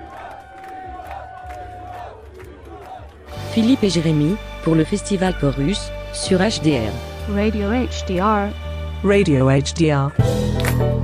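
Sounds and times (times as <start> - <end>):
concert audience calling for an encore: 0.0 - 3.5
speech: 3.6 - 10.9.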